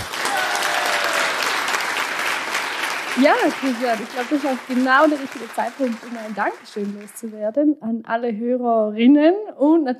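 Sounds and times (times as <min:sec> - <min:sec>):
applause: 0:00.0 - 0:07.4
speech: 0:03.2 - 0:09.9.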